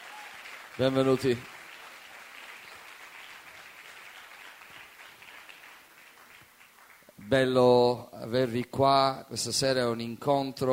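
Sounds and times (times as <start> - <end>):
audience applause of welcome: 0.0 - 7.2
speech: 0.8 - 1.5, 7.3 - 10.7.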